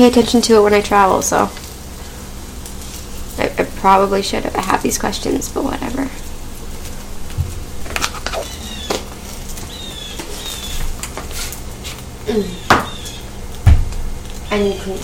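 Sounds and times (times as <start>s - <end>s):
speech: 0.0s - 1.6s, 3.8s - 6.2s, 12.3s - 12.6s, 14.5s - 15.0s
door slamming: 13.6s - 13.9s.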